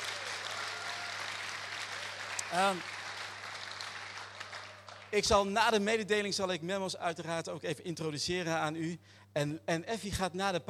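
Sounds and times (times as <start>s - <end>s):
audience applause: 0.0s - 5.1s
speech: 2.5s - 3.0s, 5.1s - 10.6s.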